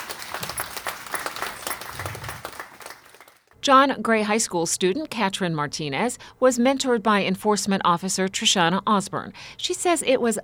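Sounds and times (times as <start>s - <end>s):
audience applause: 0.0s - 3.5s
speech: 3.6s - 10.4s.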